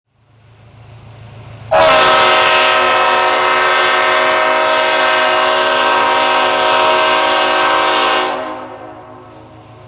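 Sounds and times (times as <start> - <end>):
horn: 1.7 - 9.3.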